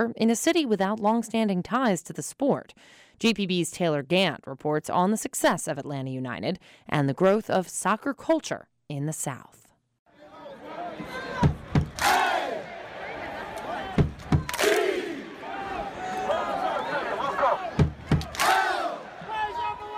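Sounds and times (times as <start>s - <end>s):
speech: 0.0s - 9.6s
stadium crowd chanting: 10.1s - 19.9s
stadium crowd clapping in unison at Bobby Dodd Stadium: 11.5s - 12.6s, 13.5s - 16.4s, 17.8s - 19.0s.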